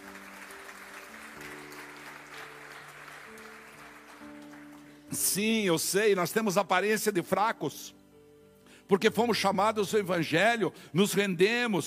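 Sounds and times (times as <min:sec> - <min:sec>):
audience applause: 0:00.0 - 0:05.1
speech: 0:05.1 - 0:08.0, 0:08.9 - 0:11.8.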